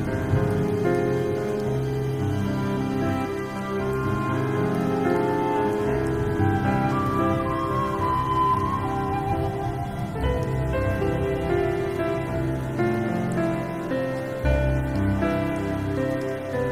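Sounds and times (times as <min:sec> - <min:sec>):
rain: 0:00.0 - 0:16.6
soundtrack of sustained low chords and a melodic line: 0:00.0 - 0:16.6.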